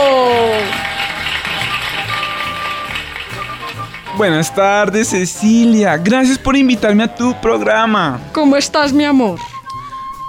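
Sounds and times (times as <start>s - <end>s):
applause: 0.0s - 4.6s
speech: 4.2s - 9.5s.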